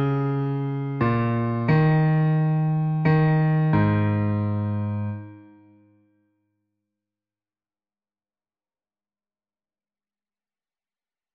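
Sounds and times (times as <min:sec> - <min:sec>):
bass: 0:00.0 - 0:05.3.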